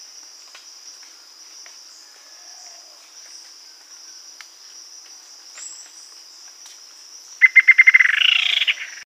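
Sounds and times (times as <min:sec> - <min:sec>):
high insect hum: 0:00.0 - 0:09.0
bird call trill: 0:07.4 - 0:09.0.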